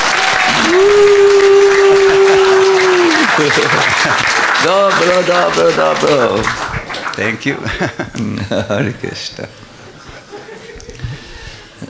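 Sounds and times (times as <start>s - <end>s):
audience applause: 0.0s - 7.9s
laughter: 1.3s - 11.2s
speech: 3.4s - 9.7s.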